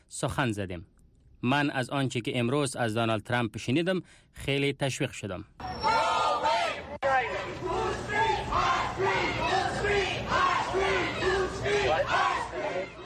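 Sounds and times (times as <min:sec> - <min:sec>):
speech: 0:00.1 - 0:05.8
protesters chanting outside: 0:05.6 - 0:13.0.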